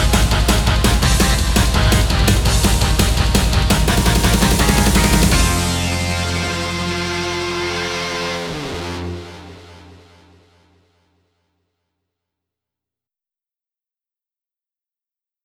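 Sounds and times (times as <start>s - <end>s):
headbanging metal music: 0.0s - 10.6s.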